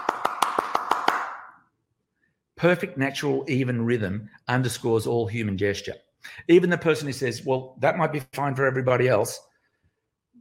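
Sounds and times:
hand claps in even rhythm: 0.0s - 1.7s
speech: 2.6s - 9.5s.

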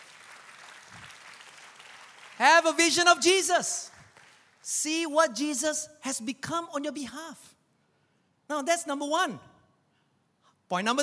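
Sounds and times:
audience applause: 0.0s - 2.8s
speech: 2.4s - 3.9s, 4.7s - 7.6s, 8.5s - 9.5s, 10.7s - 11.0s.

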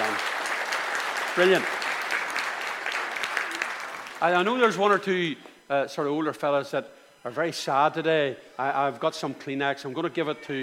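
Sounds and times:
audience applause: 0.0s - 5.0s
speech: 1.4s - 1.8s, 4.2s - 10.6s.

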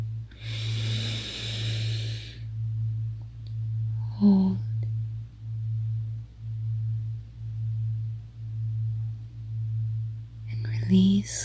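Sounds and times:
constant low hum: 0.0s - 11.4s
deep belly breath in during a relaxation exercise: 0.3s - 2.5s
speech: 4.2s - 4.5s, 10.9s - 11.4s.

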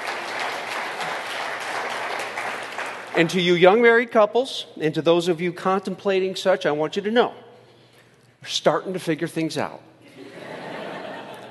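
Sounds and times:
audience applause: 0.0s - 3.4s
speech: 3.2s - 7.4s, 8.4s - 9.9s
laughter: 10.1s - 11.5s.

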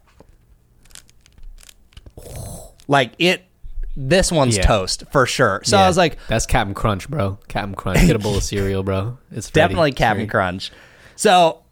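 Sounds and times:
crunchy bag being pressed: 0.8s - 2.9s
speech: 2.9s - 11.6s.

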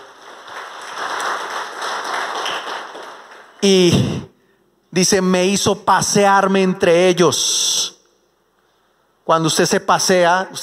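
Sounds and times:
welcome applause: 0.0s - 4.1s
speech: 3.6s - 4.3s, 5.0s - 8.0s, 9.3s - 10.6s.

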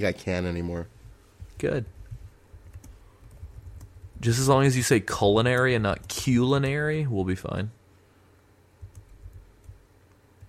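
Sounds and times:
speech: 0.0s - 1.0s, 1.6s - 2.0s, 4.2s - 7.8s
typing on a computer keyboard: 2.5s - 4.2s, 8.8s - 10.4s.

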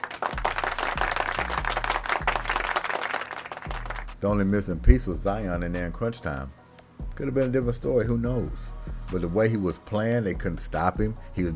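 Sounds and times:
round of applause: 0.0s - 4.2s
speech: 4.2s - 6.6s, 7.2s - 11.5s.

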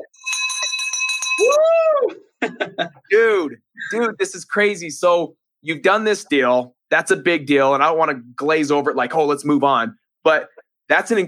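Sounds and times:
school teacher bell ringing: 0.0s - 1.6s
laughter: 2.1s - 4.3s
speech: 2.4s - 11.2s.

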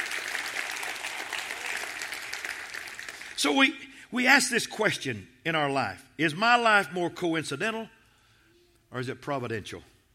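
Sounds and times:
audience clapping hands: 0.0s - 3.4s
speech: 3.4s - 8.0s, 8.9s - 9.9s.

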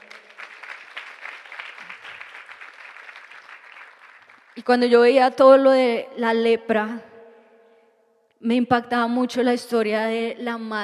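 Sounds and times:
audience applause: 0.0s - 4.6s
speech: 4.6s - 7.1s, 8.4s - 10.8s.

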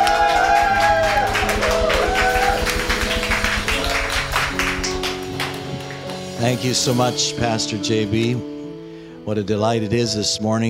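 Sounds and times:
congregation applause welcoming a pastor during worship service: 0.0s - 6.7s
steady held tones: 0.0s - 7.6s
speech: 6.4s - 8.5s, 9.3s - 10.6s.

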